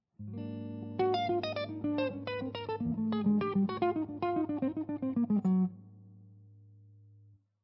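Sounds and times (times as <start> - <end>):
lydian dominant melodic lines: 1.0 - 5.7.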